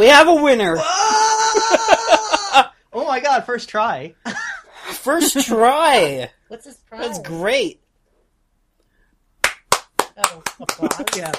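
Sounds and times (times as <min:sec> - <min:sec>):
speech: 0:00.0 - 0:02.2, 0:03.1 - 0:04.4, 0:05.0 - 0:07.8, 0:10.2 - 0:11.3
laughter: 0:01.2 - 0:02.8, 0:10.6 - 0:11.3
crisp hand claps: 0:09.4 - 0:11.3.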